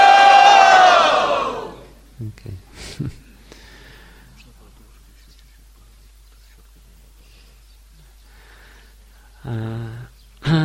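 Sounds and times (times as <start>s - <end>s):
crowd shouting a chant: 0.0s - 1.9s.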